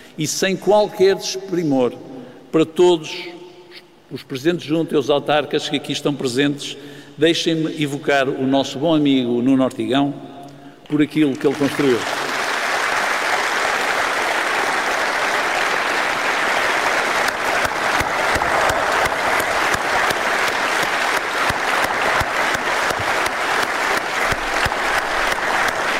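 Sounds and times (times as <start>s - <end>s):
speech: 0.2s - 3.4s, 4.1s - 10.3s, 10.9s - 12.2s
audience applause: 11.4s - 25.9s.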